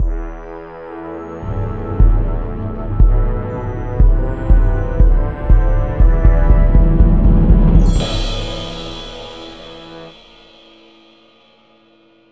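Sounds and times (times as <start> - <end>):
info jingle: 0.0 - 11.4.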